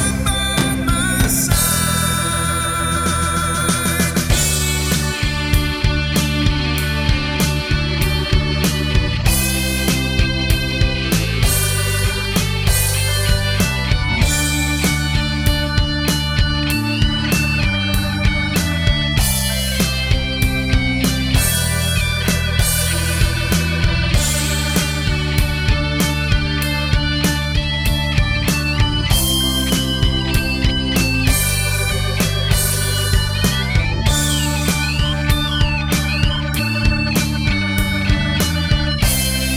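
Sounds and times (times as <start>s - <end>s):
bass: 0.0s - 39.5s
keyboards: 0.0s - 39.5s.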